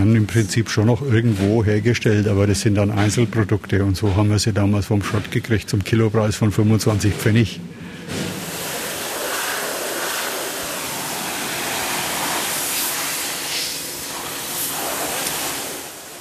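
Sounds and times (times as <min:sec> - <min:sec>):
speech: 0:00.2 - 0:08.3
steam pressure cleaner spraying: 0:08.2 - 0:16.2.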